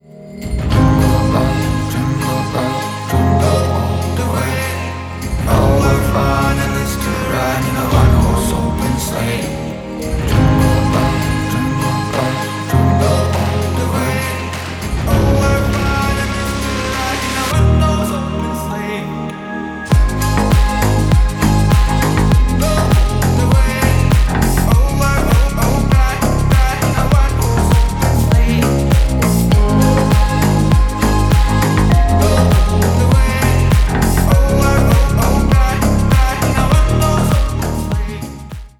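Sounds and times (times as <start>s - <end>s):
Christmas song: 0.0s - 38.7s.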